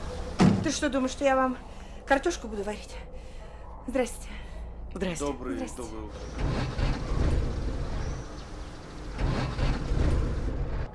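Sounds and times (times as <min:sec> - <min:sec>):
speech: 0:00.6 - 0:03.1, 0:03.9 - 0:07.0
car engine with a weak starter cranking, failing to start: 0:06.1 - 0:10.9.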